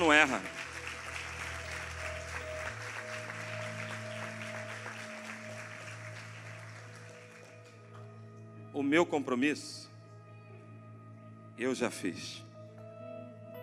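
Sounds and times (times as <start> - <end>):
audience applause: 0.0 - 7.9
speech: 0.1 - 0.7, 8.8 - 9.9, 11.6 - 12.5.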